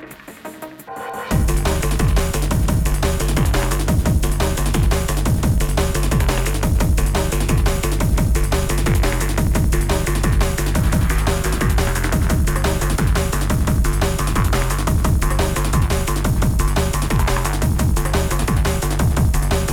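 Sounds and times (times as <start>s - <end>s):
strobing broken snare beat: 1.2s - 19.7s.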